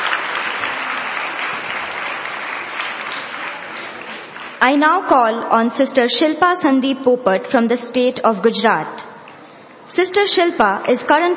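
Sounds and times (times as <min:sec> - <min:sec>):
audience applause: 0:00.0 - 0:04.6
speech: 0:04.6 - 0:09.1, 0:09.9 - 0:11.3.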